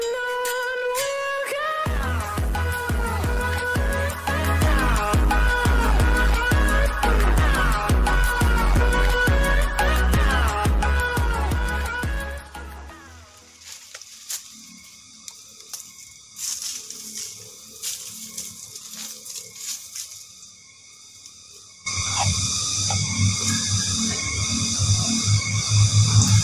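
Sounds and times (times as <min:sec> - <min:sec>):
sooty-headed bulbul song in short liquid phrases: 0:00.0 - 0:13.8, 0:21.2 - 0:26.4.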